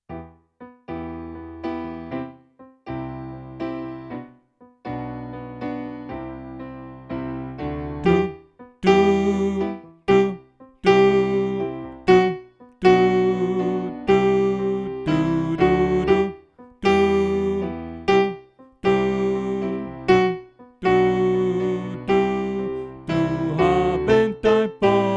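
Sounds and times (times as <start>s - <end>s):
soprano voice: 8.0s - 25.1s.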